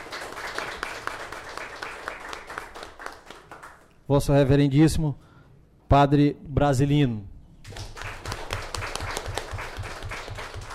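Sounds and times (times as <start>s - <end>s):
audience applause: 0.0s - 3.8s, 7.7s - 10.7s
speech: 4.1s - 5.2s, 5.9s - 7.8s.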